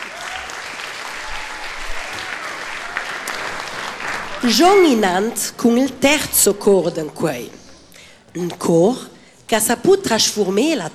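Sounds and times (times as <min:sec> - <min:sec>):
audience applause: 0:00.0 - 0:05.4
speech: 0:04.4 - 0:07.6, 0:08.4 - 0:10.9.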